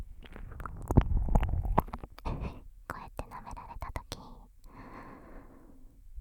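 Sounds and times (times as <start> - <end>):
ear licking: 0.1 - 2.5.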